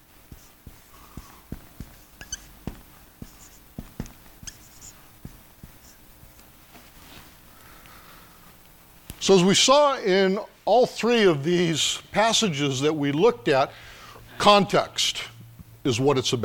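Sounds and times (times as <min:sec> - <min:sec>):
writing on a board: 0:00.0 - 0:06.1
speech: 0:09.3 - 0:16.4.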